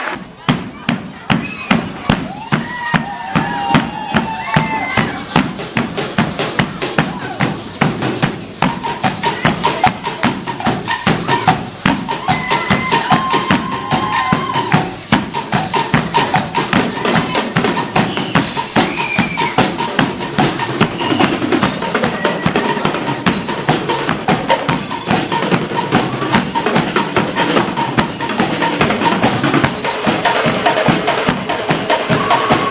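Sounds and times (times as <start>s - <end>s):
rhythm: 0.1s - 32.6s.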